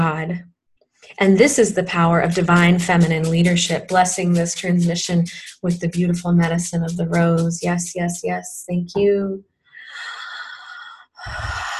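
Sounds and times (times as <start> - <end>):
speech: 0.1 - 9.5, 11.2 - 11.7
person breathing deeply: 9.8 - 11.7.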